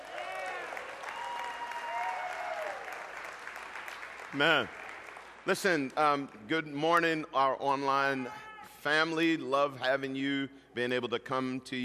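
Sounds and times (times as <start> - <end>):
church congregation applauding: 0.0 - 8.1
speech: 4.3 - 4.8, 5.5 - 11.8.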